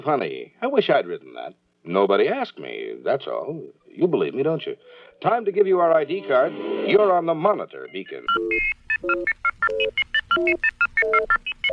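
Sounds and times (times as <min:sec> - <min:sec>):
speech: 0:00.0 - 0:11.7
telephone touch-tone beeps as a number is dialed: 0:07.9 - 0:11.7.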